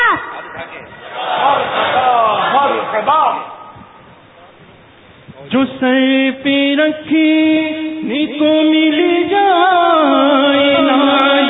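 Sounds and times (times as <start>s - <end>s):
crowd chanting religious slogans at a religious gathering: 1.0s - 3.0s, 10.7s - 11.4s
speech: 5.5s - 11.4s.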